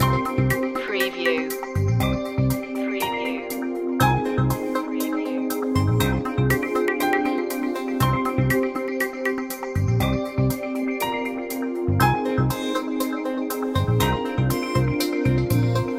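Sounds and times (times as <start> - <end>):
beat loop: 0.0 - 15.9.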